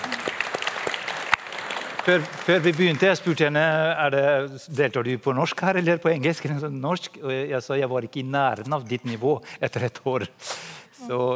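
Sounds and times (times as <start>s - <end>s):
audience applause: 0.0s - 3.5s
speech: 2.0s - 11.3s.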